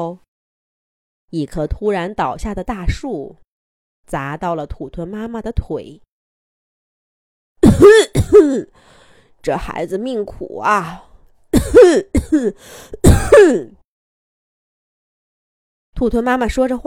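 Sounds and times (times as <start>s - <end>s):
speech: 0.0s - 0.2s, 1.3s - 3.4s, 4.1s - 6.0s, 7.6s - 13.8s, 16.0s - 16.8s
coughing: 7.6s - 8.8s, 11.6s - 13.8s.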